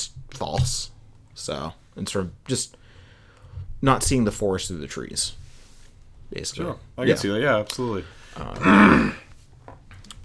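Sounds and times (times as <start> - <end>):
speech: 0.5 - 2.8, 3.8 - 5.4, 6.3 - 9.2
throat clearing: 8.4 - 9.3.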